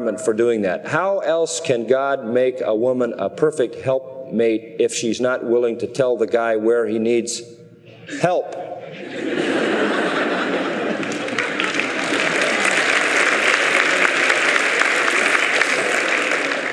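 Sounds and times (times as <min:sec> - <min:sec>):
speech: 0:00.0 - 0:09.4
laughter: 0:08.0 - 0:16.7
women clapping: 0:10.8 - 0:16.7.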